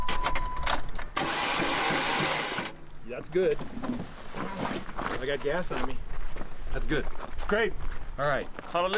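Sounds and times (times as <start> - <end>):
car engine being cranked to start, starter whirring: 0.1 - 2.8
speech: 3.2 - 4.1, 5.2 - 6.1, 6.7 - 8.9.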